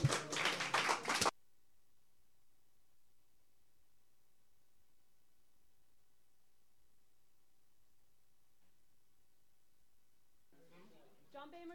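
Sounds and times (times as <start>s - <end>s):
audience applause: 0.0s - 1.3s.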